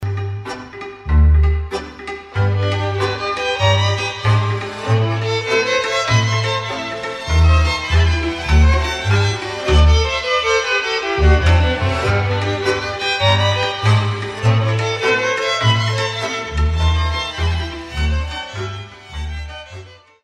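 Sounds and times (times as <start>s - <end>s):
Romanian hora folk dance music: 0.0s - 20.2s.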